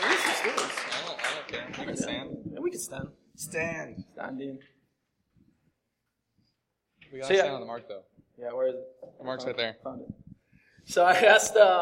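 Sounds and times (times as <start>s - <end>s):
audience clapping: 0.0s - 2.3s
speech: 1.9s - 4.8s, 7.1s - 10.2s, 10.9s - 11.8s.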